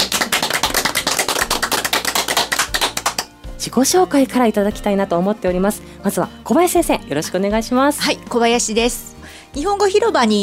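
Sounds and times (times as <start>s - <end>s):
studio applause for guests: 0.0s - 3.4s
speech: 3.6s - 10.4s.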